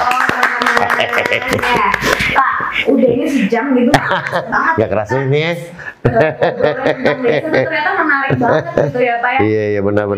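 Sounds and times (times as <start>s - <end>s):
crowd clapping: 0.0s - 2.4s
laughter: 0.7s - 4.8s, 6.0s - 9.2s
speech: 1.3s - 10.1s.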